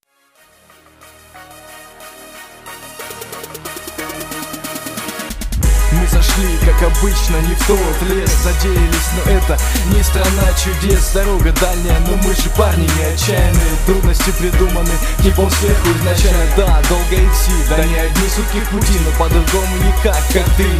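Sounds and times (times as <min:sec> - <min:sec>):
instrumental music: 0:00.3 - 0:20.7.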